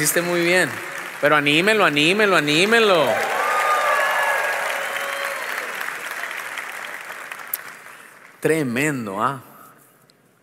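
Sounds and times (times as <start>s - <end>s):
speech: 0.0s - 3.3s, 8.4s - 9.5s
audience applause: 0.0s - 8.4s.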